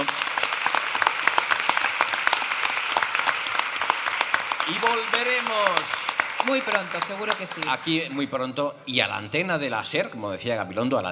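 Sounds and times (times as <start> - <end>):
audience applause: 0.0 - 8.4
speech: 4.7 - 11.1.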